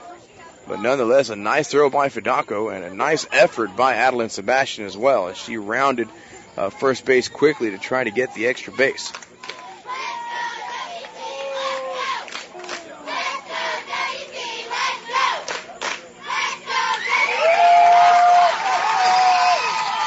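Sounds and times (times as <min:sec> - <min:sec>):
speech: 0:00.7 - 0:09.2
stadium crowd cheering: 0:06.7 - 0:20.0.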